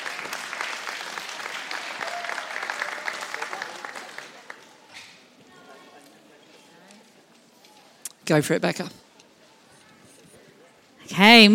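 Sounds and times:
audience applause welcoming a speaker to the stage: 0.0 - 4.9
speech: 8.3 - 9.0, 11.2 - 11.5.

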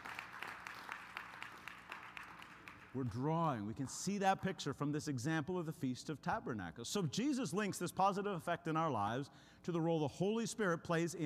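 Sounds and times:
church congregation clapping in praise: 0.0 - 4.1
speech: 2.9 - 11.2.

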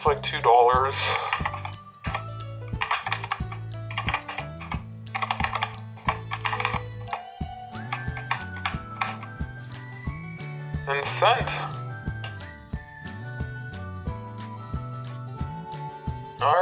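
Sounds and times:
speech: 0.0 - 1.5
music: 0.0 - 16.6
typing credit card details on a computer keyboard: 1.4 - 9.3.

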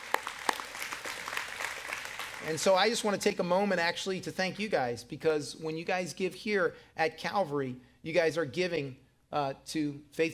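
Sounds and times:
crowd clapping: 0.0 - 2.9
speech: 2.4 - 10.3.

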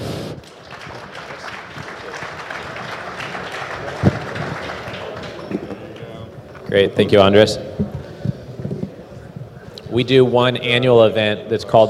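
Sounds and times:
crowd applauding: 0.0 - 6.3
speech: 6.7 - 7.7, 10.0 - 11.8.

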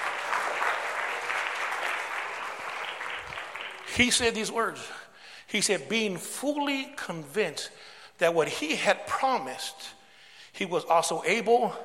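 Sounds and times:
crowd clapping: 0.0 - 4.5
speech: 4.0 - 10.0, 10.6 - 11.8.

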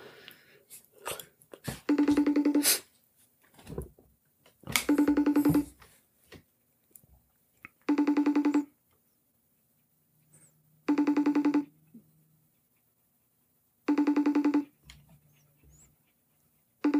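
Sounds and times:
phone ringing on a call: 1.8 - 2.8, 4.8 - 5.8, 7.8 - 8.8, 10.8 - 11.8, 13.9 - 14.7, 16.8 - 16.9.

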